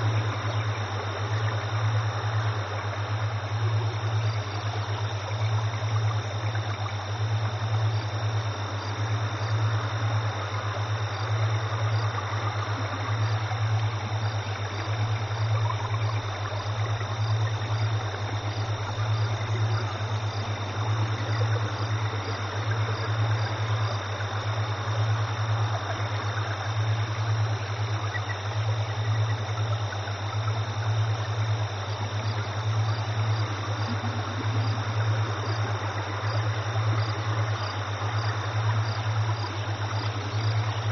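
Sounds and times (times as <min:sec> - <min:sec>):
ambience: 0:00.0 - 0:40.8
alpha frequency tones: 0:33.1 - 0:35.3.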